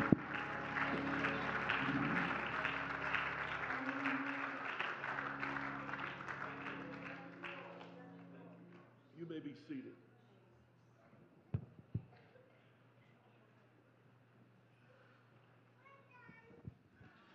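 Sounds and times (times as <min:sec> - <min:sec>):
audience applauding: 0:00.0 - 0:08.4.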